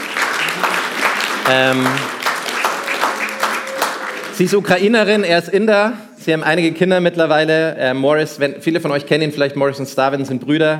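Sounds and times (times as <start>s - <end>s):
crowd applauding: 0.0s - 5.2s
speech: 1.5s - 2.1s, 4.4s - 10.7s.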